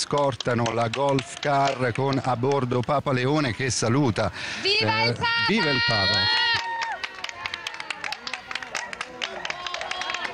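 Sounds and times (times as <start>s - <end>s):
crowd applauding as the Pope passes: 0.0s - 3.6s, 5.2s - 10.3s
speech: 0.1s - 6.5s.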